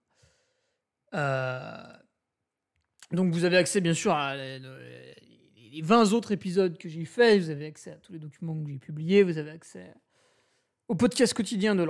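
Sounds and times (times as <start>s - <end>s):
speech: 1.1s - 1.8s, 3.1s - 10.0s, 10.9s - 11.8s
man burping mid-speech: 1.1s - 2.2s.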